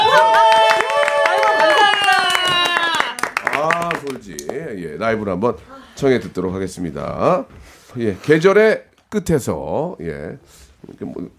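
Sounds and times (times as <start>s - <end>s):
audience clapping: 0.0s - 4.7s
speech: 5.0s - 11.3s.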